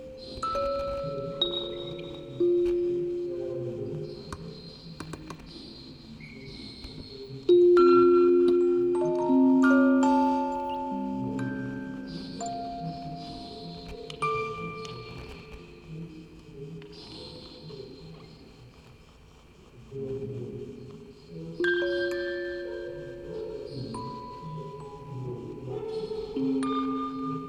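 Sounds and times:
quartet of music boxes playing: 0.0s - 4.2s, 7.5s - 15.5s, 21.6s - 27.4s.

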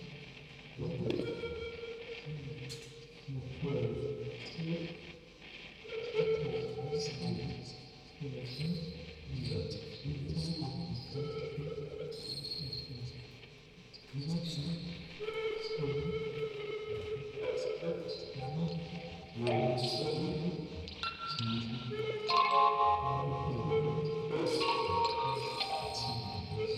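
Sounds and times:
field recording ambience: 0.0s - 26.7s
tape playback: 0.0s - 26.7s
vocoder: 0.0s - 26.7s
quartet of music boxes playing: 22.3s - 26.5s.

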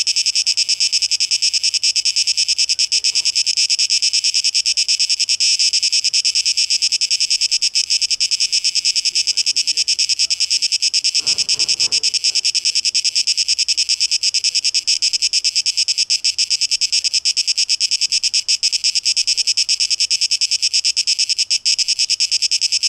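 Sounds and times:
cicada song: 0.0s - 22.8s.

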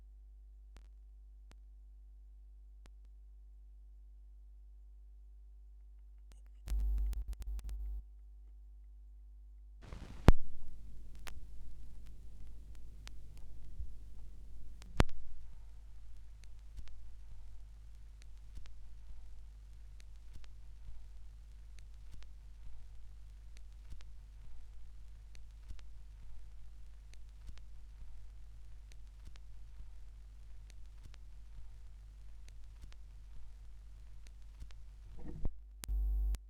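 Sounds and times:
vinyl record noise: 6.7s - 8.0s, 9.8s - 36.4s.

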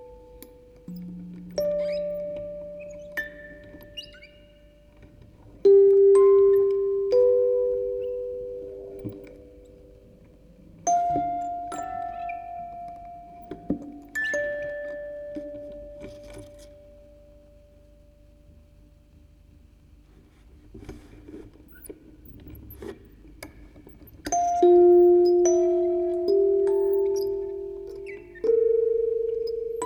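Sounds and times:
quartet of music boxes playing: 0.0s - 17.3s, 24.2s - 29.8s.

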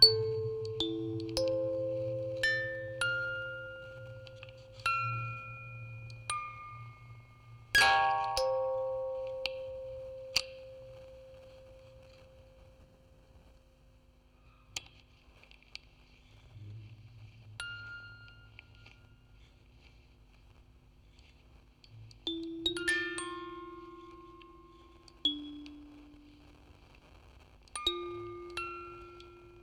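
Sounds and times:
music box quartet on tape with vocoder: 0.0s - 12.8s, 17.6s - 19.2s, 22.1s - 26.6s, 27.8s - 29.6s.

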